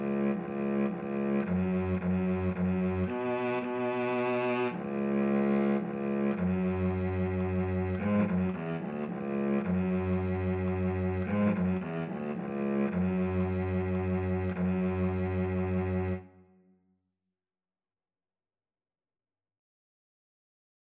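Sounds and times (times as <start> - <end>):
cello duet: 0.0 - 16.5.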